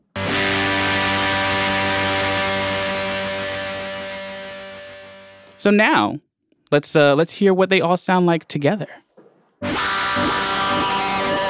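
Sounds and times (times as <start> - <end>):
heavily distorted electric guitar chord: 0.0 - 5.5, 9.6 - 11.4
speech: 5.6 - 9.0.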